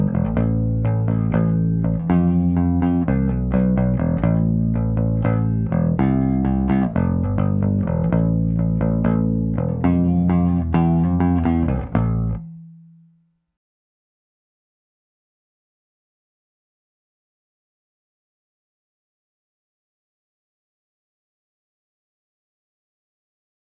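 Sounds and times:
mono DI line bass guitar: 0:00.0 - 0:13.1.

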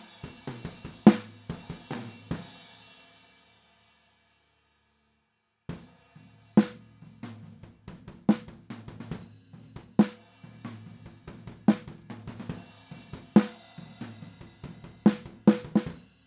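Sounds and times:
snare drum recorded with a microphone: 0:00.0 - 0:03.0, 0:06.6 - 0:16.2
drums: 0:00.0 - 0:05.0, 0:05.6 - 0:16.2.

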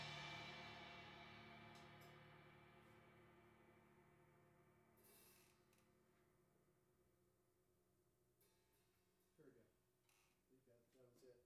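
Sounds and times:
drums recorded with PZM omni stereo microphones: 0:00.0 - 0:04.3.

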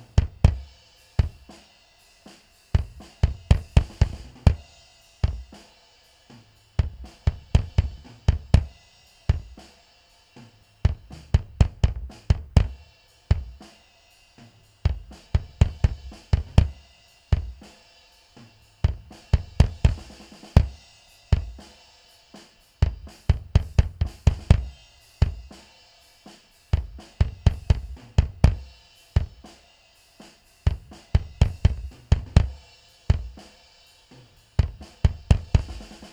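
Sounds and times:
bass drum: 0:00.0 - 0:01.6, 0:02.7 - 0:05.6, 0:06.4 - 0:09.7, 0:10.4 - 0:13.7, 0:14.4 - 0:17.8, 0:18.4 - 0:21.8, 0:22.8 - 0:25.6, 0:26.7 - 0:29.6, 0:30.6 - 0:33.5, 0:34.6 - 0:36.1.

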